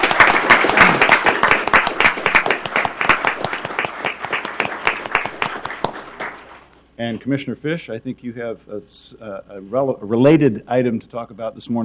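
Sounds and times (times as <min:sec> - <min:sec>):
audience applause after Portland Pride Month proclamation in Portland, Oregon: 0:00.0 - 0:06.6
speech: 0:07.0 - 0:11.8.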